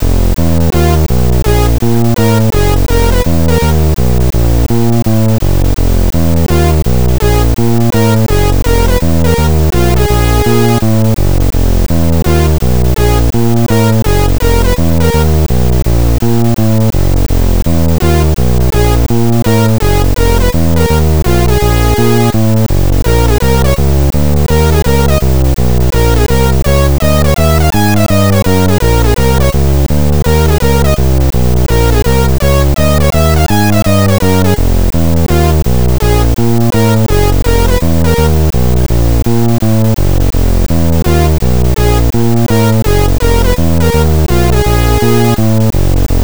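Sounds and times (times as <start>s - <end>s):
Commodore 64 chiptune jazz music: 0.0s - 46.2s.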